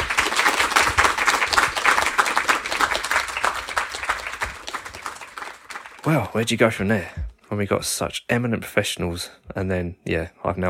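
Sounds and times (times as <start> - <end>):
audience applause: 0.0 - 6.4
speech: 6.1 - 10.6.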